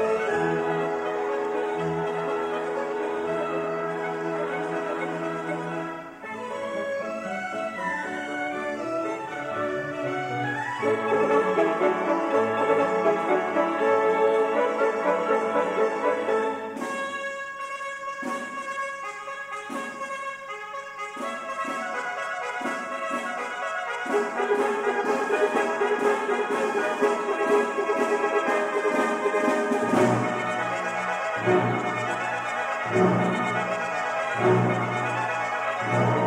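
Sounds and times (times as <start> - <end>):
symphonic choir singing: 0.0 - 16.8, 24.3 - 36.2
orchestra playing: 0.0 - 36.2.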